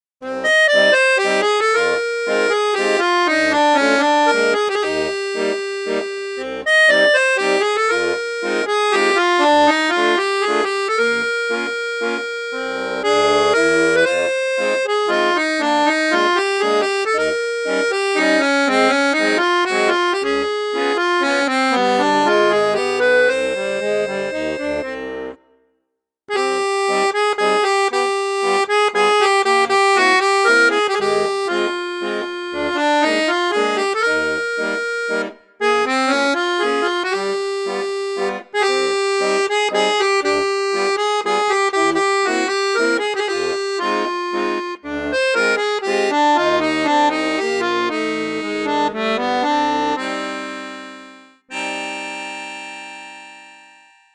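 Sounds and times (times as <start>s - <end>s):
bassoon register: 0.2s - 25.5s, 26.3s - 53.4s.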